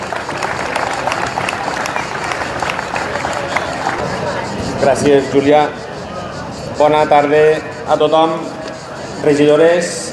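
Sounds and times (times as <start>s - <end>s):
large audience applauding: 0.0s - 4.6s
speech: 4.8s - 5.8s, 6.8s - 8.6s, 9.2s - 10.0s.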